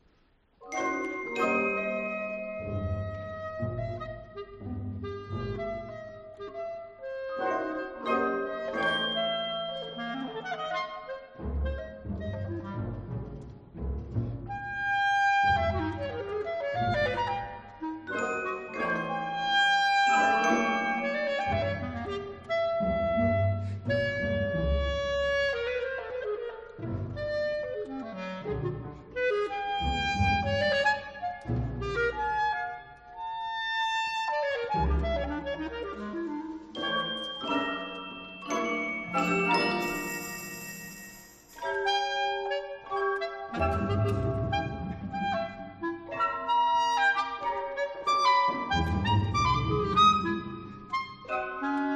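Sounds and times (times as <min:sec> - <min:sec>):
clarinet concerto allegretto: 0:00.6 - 0:51.9.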